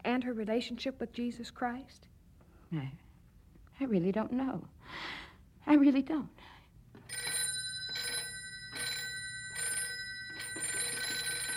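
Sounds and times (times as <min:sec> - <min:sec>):
speech: 0:00.2 - 0:02.1, 0:02.7 - 0:03.0, 0:03.8 - 0:07.4
telephone ringing: 0:07.0 - 0:11.5.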